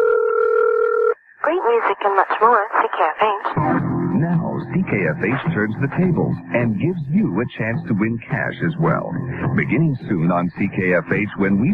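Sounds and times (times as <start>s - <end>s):
telephone dialing a radio station number: 0.0s - 1.2s
lively voices: 1.4s - 11.7s
speech: 1.7s - 11.7s.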